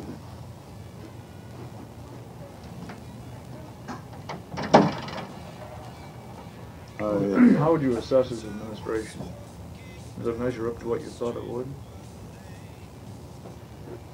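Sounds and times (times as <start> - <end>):
low steady hum: 0.0 - 14.1
door being pushed shut: 4.3 - 5.3
speech: 7.0 - 9.5, 10.2 - 11.9.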